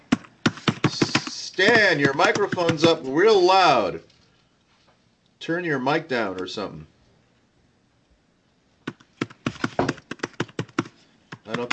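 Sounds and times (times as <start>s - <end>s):
typing on a computer keyboard: 0.0s - 3.0s, 8.9s - 11.7s
speech: 1.6s - 4.1s, 5.4s - 6.9s, 11.5s - 11.7s.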